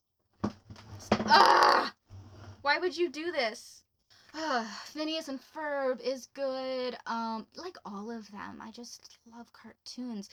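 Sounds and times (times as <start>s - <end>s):
noisy drawer being pulled open with harsh scraping squeal: 2.1s - 2.6s
speech: 2.8s - 3.8s, 4.4s - 10.3s.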